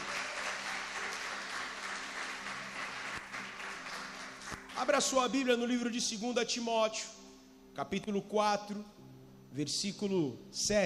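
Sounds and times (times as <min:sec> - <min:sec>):
crowd applause: 0:00.0 - 0:04.7
speech: 0:04.8 - 0:07.2, 0:07.8 - 0:10.8.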